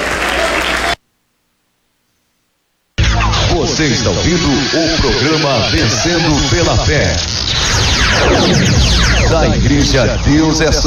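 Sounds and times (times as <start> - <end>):
audience clapping hands: 0.0 - 1.0
speech: 3.8 - 10.8.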